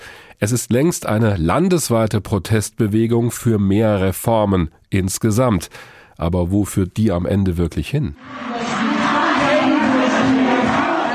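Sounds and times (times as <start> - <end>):
speech: 0.4 - 8.7
students shouting down a government spokesman: 8.2 - 11.1.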